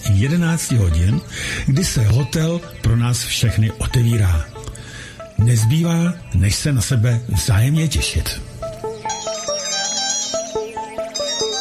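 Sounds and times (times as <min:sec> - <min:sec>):
speech: 0:00.1 - 0:04.6, 0:05.4 - 0:08.6
mobile phone ringtone melody: 0:08.9 - 0:11.5.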